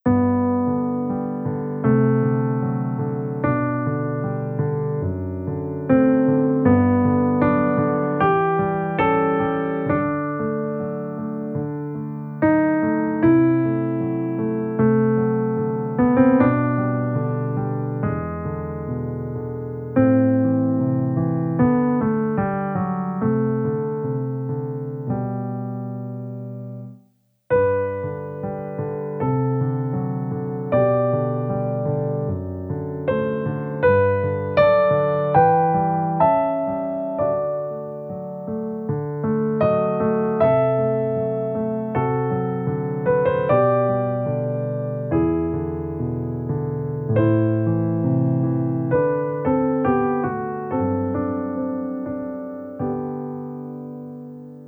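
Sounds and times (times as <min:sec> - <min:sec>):
piano sonata: 0:00.0 - 0:54.6.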